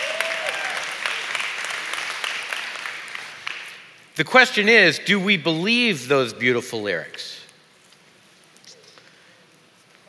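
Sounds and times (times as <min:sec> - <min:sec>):
audience clapping: 0:00.0 - 0:04.7
speech: 0:04.2 - 0:07.4.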